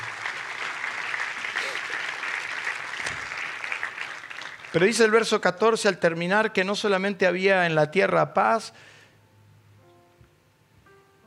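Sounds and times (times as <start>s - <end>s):
audience applause: 0.0s - 5.4s
speech: 4.7s - 9.0s.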